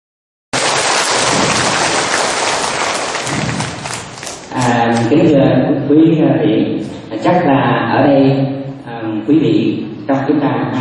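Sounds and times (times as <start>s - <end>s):
large audience applause: 0.6s - 4.8s
speech: 4.6s - 10.7s.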